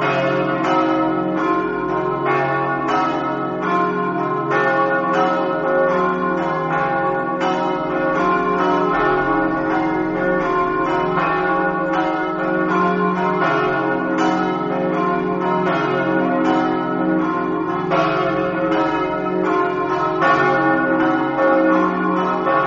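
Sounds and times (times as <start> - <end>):
bells ringing in Muzzana: 0.0 - 22.6.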